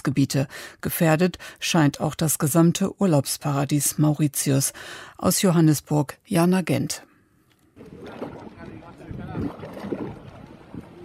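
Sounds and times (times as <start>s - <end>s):
speech: 0.0s - 7.1s
sea surf washing onto an oil-covered shore: 7.8s - 11.0s.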